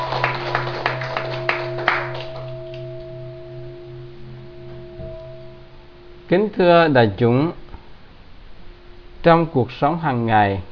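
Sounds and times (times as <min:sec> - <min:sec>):
audience applause: 0:00.0 - 0:02.5
speech: 0:06.3 - 0:07.6, 0:09.2 - 0:10.6.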